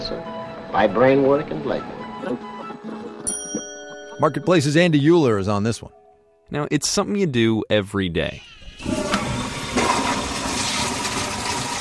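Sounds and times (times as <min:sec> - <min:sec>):
speech: 0:00.1 - 0:09.0
toilet flushing: 0:08.5 - 0:11.7.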